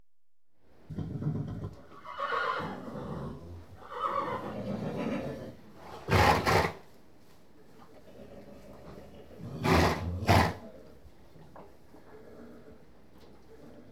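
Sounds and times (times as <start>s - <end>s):
horse whinnying in stables: 0.9s - 6.8s, 9.5s - 10.6s.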